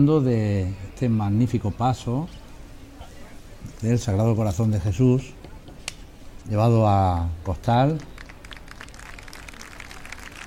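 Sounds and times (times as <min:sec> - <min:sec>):
speech: 0:00.0 - 0:02.4, 0:03.7 - 0:05.4, 0:06.4 - 0:08.1
crowd clapping for a Sacred Heart of Jesus procession float: 0:07.1 - 0:10.4.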